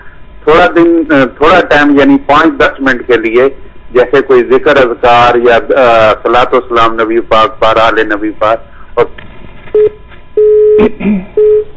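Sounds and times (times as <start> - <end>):
speech: 0.5 - 9.2, 10.8 - 11.6
telephone tones from a call failing to connect: 9.7 - 11.7.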